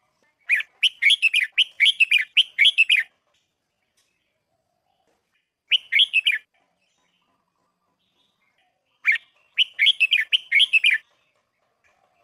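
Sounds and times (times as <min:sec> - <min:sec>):
red-whiskered bulbul singing: 0:00.4 - 0:03.1, 0:05.3 - 0:07.3, 0:08.0 - 0:11.1.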